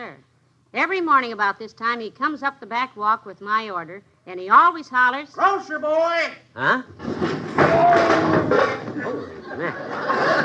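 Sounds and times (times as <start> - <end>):
speech: 0.0 - 10.4
person tripping and falling over something: 6.9 - 9.7
laughter: 7.7 - 10.4.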